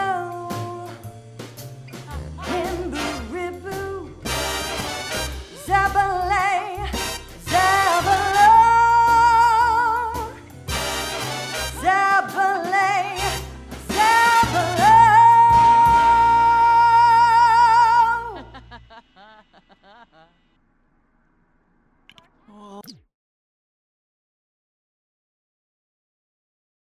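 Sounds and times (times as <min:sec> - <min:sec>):
person singing: 0:00.0 - 0:01.0, 0:02.1 - 0:04.3, 0:05.5 - 0:10.4, 0:11.8 - 0:18.4
laughter: 0:18.1 - 0:20.4.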